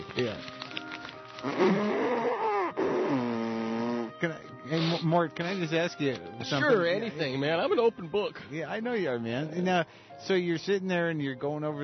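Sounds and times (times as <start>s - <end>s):
speech: 0.1s - 0.5s, 5.0s - 11.8s
person blowing nose hard into a tissue: 1.4s - 5.2s.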